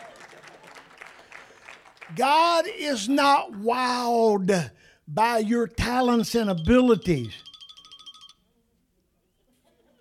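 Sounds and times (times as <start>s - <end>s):
audience hand clapping: 0.0s - 2.4s
speech: 2.1s - 7.4s.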